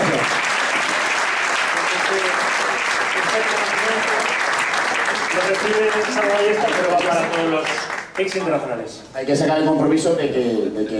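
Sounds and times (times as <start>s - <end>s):
audience applause: 0.0s - 8.7s
speech: 3.2s - 4.3s, 5.3s - 10.9s.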